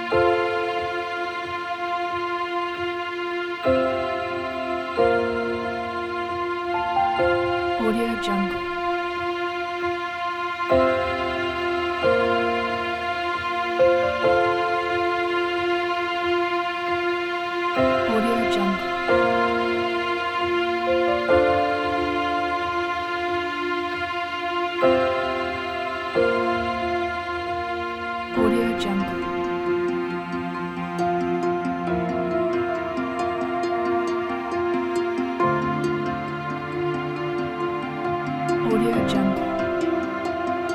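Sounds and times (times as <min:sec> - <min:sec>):
emotional cinematic documentary drama music: 0:00.0 - 0:40.7.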